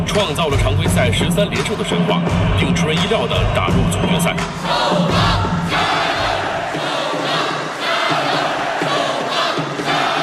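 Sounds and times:
speech: 0.2s - 5.8s
basketball fans shouting: 4.6s - 10.2s.

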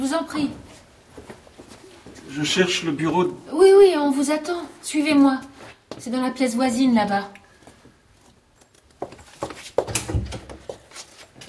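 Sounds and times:
speech: 0.0s - 1.3s, 2.3s - 7.4s
wooden door opening or closing: 9.8s - 10.6s.

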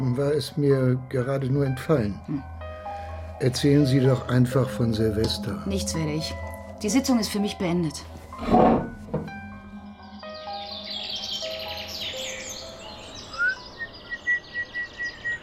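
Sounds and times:
speech: 0.2s - 2.5s, 3.4s - 9.2s
birds in a park: 9.7s - 15.4s.

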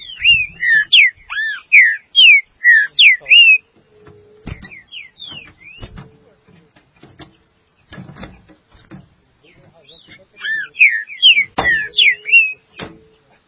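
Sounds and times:
green-winged saltator whistles: 0.0s - 3.7s, 4.4s - 6.0s, 9.9s - 12.9s
knocking and clatter: 4.5s - 9.2s.

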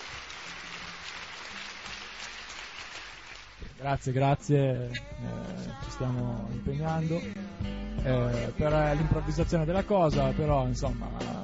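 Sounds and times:
applause: 0.0s - 3.8s
speech: 3.8s - 11.4s.

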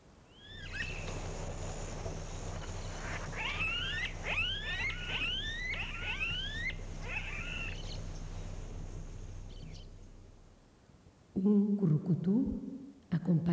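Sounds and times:
flock of ani birds calling: 0.3s - 10.6s
speech: 11.4s - 13.5s.

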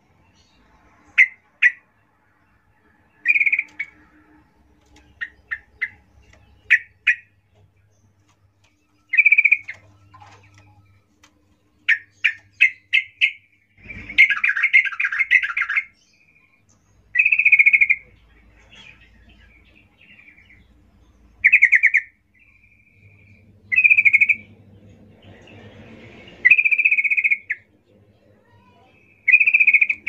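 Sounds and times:
Yellow-vented Bulbul song: 0.1s - 25.4s, 26.4s - 30.0s.

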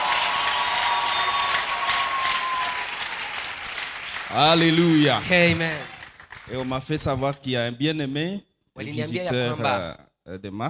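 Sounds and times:
church congregation applauding during a sermon: 0.0s - 7.4s
speech: 4.3s - 5.9s, 6.5s - 10.6s.

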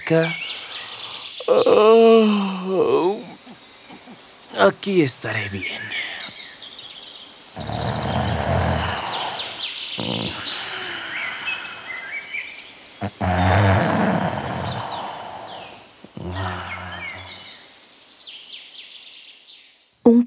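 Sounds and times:
speech: 0.1s - 0.4s, 1.5s - 3.4s, 4.5s - 6.0s
wolf snoring while napping under a tree: 7.6s - 11.2s, 13.0s - 17.4s.

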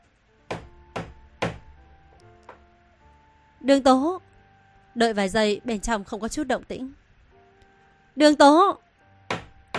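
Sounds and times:
knocking on a door: 0.5s - 1.8s, 2.5s - 2.7s, 9.2s - 9.7s
speech: 3.6s - 4.3s, 5.0s - 7.0s, 8.2s - 8.8s.

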